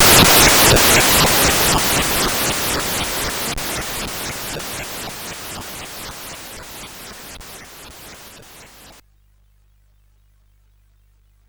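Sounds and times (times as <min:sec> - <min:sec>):
frantic chip synth music on CSG8580R5 chip: 0:00.0 - 0:09.0.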